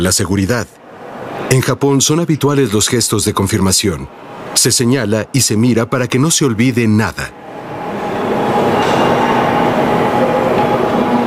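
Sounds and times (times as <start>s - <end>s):
speech: 0.0s - 0.8s, 1.5s - 7.8s
Shinkansen bullet train running: 7.4s - 11.2s.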